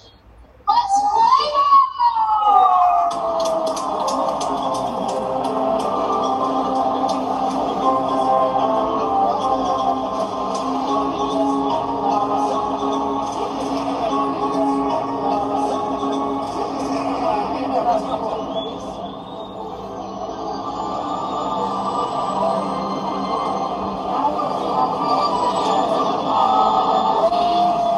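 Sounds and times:
baseball stadium crowd chatter and cheering heard from the stands: 0:00.7 - 0:27.9
wailing siren-like tone: 0:18.7 - 0:27.9.

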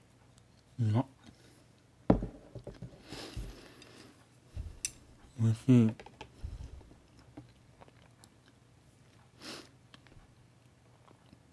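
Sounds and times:
speech: 0:00.8 - 0:01.2, 0:05.6 - 0:06.1
person chewing mentaiko pollock roe at dinner: 0:06.9 - 0:11.5.

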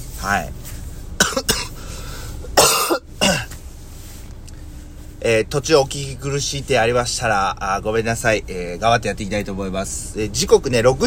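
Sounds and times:
speech: 0:00.2 - 0:00.6, 0:05.2 - 0:11.0
person coughing: 0:01.2 - 0:01.8, 0:02.6 - 0:03.6.

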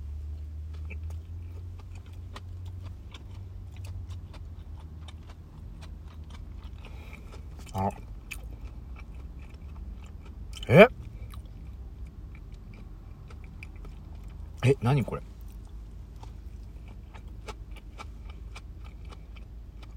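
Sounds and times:
chewing a 7-Eleven vegetable mix sandwich with tomato and mayonnaise: 0:00.3 - 0:19.9
speech: 0:07.8 - 0:08.0, 0:10.7 - 0:11.0, 0:14.7 - 0:15.3.

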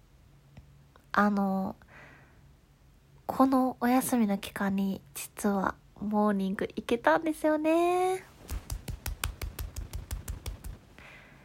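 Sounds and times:
speech: 0:01.2 - 0:01.8, 0:03.3 - 0:08.3
clapping with upper arms: 0:08.5 - 0:10.8.

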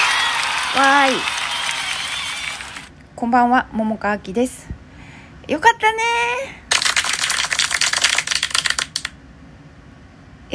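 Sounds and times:
crowd applause: 0:00.0 - 0:02.9, 0:06.7 - 0:08.9
high voiced cheer: 0:00.0 - 0:02.9
speech: 0:00.7 - 0:01.4, 0:03.2 - 0:04.8, 0:05.5 - 0:06.6.

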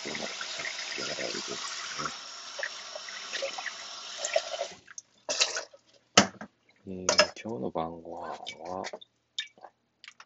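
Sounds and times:
tap water running while washing dinner dishes: 0:00.0 - 0:05.8
speech: 0:06.9 - 0:09.1.

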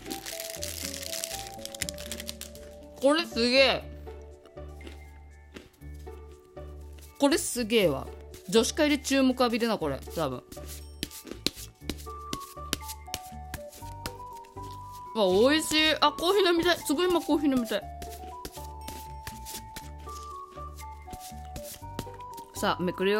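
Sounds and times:
tarot cards being shuffled: 0:00.0 - 0:02.8, 0:10.1 - 0:15.1, 0:17.1 - 0:22.5
speech: 0:03.0 - 0:03.9, 0:07.2 - 0:10.8, 0:15.2 - 0:17.9, 0:22.6 - 0:23.1.

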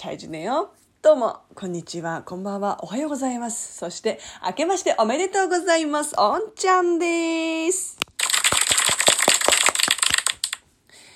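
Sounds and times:
speech: 0:00.0 - 0:08.1
applause sound effect: 0:08.2 - 0:10.6.

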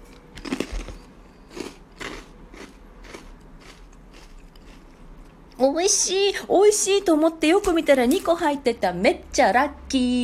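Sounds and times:
biting crunchy honey-fried rice cracker: 0:00.1 - 0:05.4
speech: 0:05.6 - 0:10.2.

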